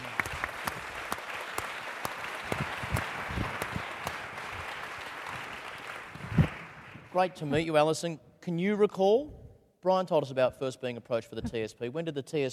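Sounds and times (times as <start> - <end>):
crowd applauding: 0.0 - 7.2
speech: 7.2 - 12.5.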